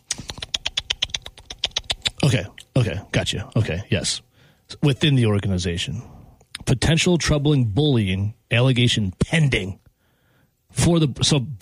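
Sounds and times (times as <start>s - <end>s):
typing on a computer keyboard: 0.0s - 2.2s
speech: 2.3s - 9.8s, 10.7s - 11.5s.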